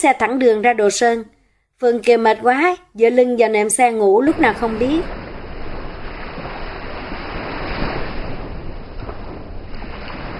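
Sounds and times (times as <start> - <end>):
speech: 0.0 - 5.2
ocean waves lapping: 4.2 - 10.3.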